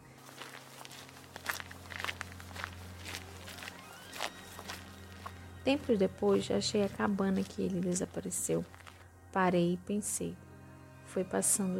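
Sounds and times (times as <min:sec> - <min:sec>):
crisp crunchy footsteps walking into the forest: 0:00.0 - 0:09.1
constant low hum: 0:00.0 - 0:11.7
speech: 0:05.6 - 0:10.4, 0:11.1 - 0:11.7.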